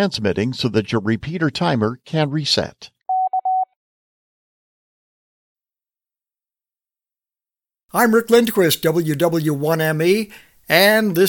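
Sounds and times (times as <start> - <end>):
speech: 0.0 - 3.0, 7.9 - 11.2
Morse code K character tone: 3.1 - 3.7.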